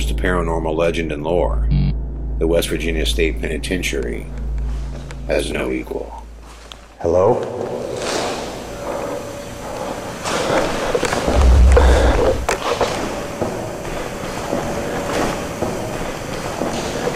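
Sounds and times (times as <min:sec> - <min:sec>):
speech: 0:00.2 - 0:01.8, 0:02.4 - 0:04.4, 0:05.3 - 0:06.2, 0:07.0 - 0:08.0
footsteps in a room: 0:04.4 - 0:05.3, 0:06.2 - 0:17.1.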